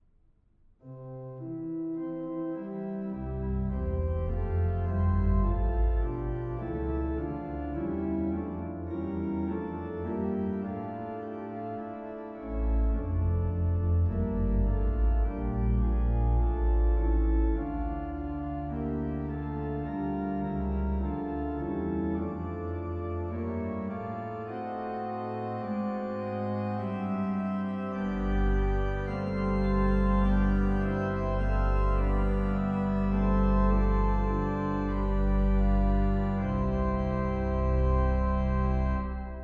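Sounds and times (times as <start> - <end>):
prelude in C major: 0.9 - 39.4.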